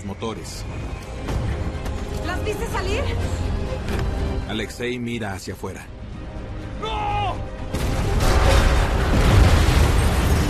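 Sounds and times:
speech: 0.0 - 1.4, 2.2 - 6.0
huge explosion: 7.7 - 10.4.

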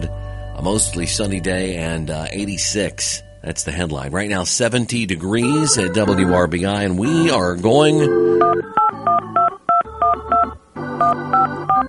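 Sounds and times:
speech: 0.6 - 8.6
touch-tone telephone dialing: 8.1 - 11.8.

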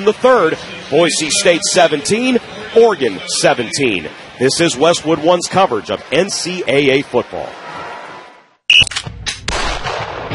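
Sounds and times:
speech: 0.0 - 7.6
gunshots at a shooting range: 8.9 - 10.3.

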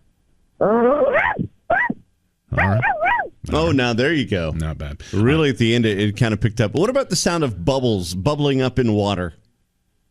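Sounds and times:
speech: 0.6 - 1.0, 3.5 - 9.4
person imitating a dog barking: 0.6 - 3.7.

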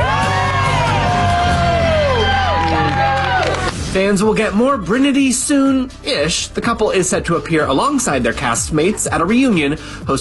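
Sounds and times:
audience applause and cheering: 0.0 - 3.9
speech: 3.9 - 10.1.

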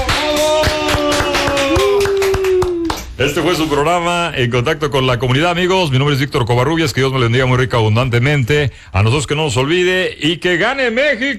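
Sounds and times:
audience applauding: 0.0 - 3.7
speech: 3.2 - 11.3.

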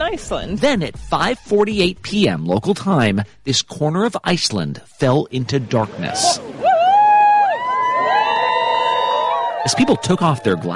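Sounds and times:
speech: 0.1 - 6.7, 9.6 - 10.7
people cheering as a solar eclipse darkens Iceland: 6.0 - 10.7.

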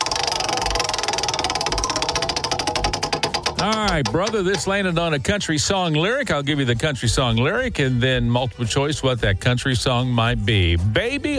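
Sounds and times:
country music trivia prize wheel spinning and clicking: 0.0 - 5.2
speech: 3.6 - 11.3.

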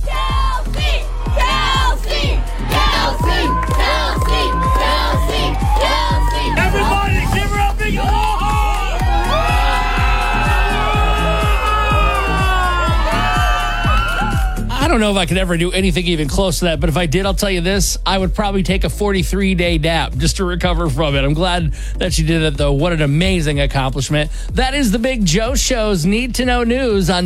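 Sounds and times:
supporters cheering: 0.0 - 15.2
speech: 15.0 - 27.2.

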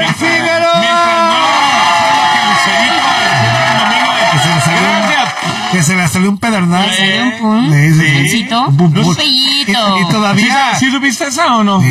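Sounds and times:
audience applause and cheering: 0.0 - 7.0
speech: 5.9 - 11.8.

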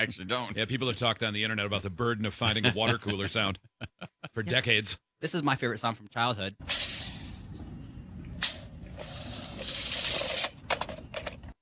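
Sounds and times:
speech: 0.0 - 7.0
tape measure rolling back up: 8.4 - 11.0.

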